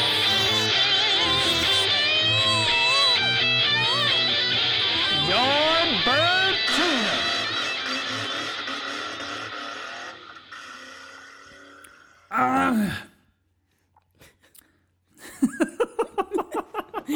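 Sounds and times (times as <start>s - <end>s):
laughter: 0.0s - 10.4s, 15.2s - 17.1s
person clearing throat: 12.4s - 13.2s.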